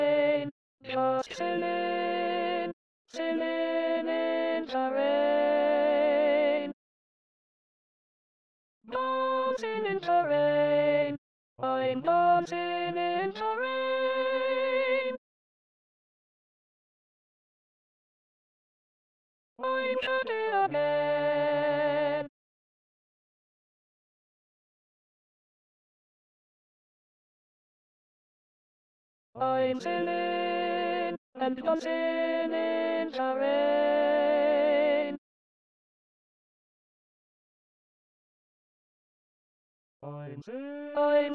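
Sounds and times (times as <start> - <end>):
alto voice singing in SATB choir: 0.0 - 6.8, 8.9 - 15.2, 19.6 - 22.3, 29.4 - 35.2, 40.0 - 41.3.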